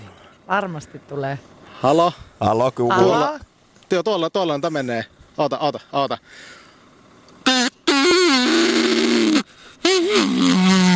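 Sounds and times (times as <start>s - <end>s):
speech: 0.5s - 6.6s, 10.2s - 10.9s
reed game call blown like a bull moose call: 7.4s - 10.9s.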